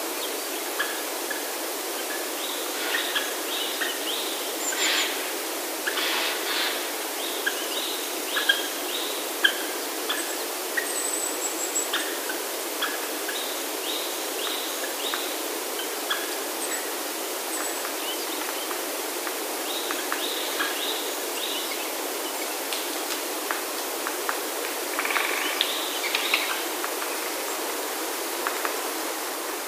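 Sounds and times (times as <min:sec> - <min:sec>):
steady background hiss: 0:00.0 - 0:29.6
Japanese green woodpecker calling: 0:02.7 - 0:08.7.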